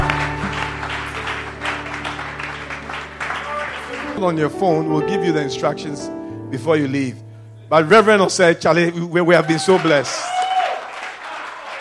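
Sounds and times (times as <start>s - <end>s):
applause welcoming a reverend at a Christian prayer gathering: 0.0s - 4.2s, 9.4s - 11.7s
sustained low musical tones: 0.0s - 9.3s
speech: 4.2s - 10.3s.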